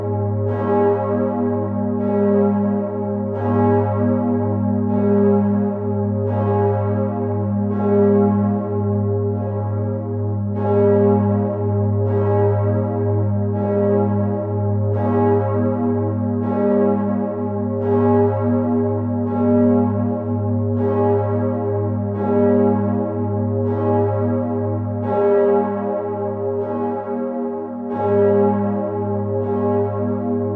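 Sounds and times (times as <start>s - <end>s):
south tower bell of a church ringing: 0.0s - 30.5s.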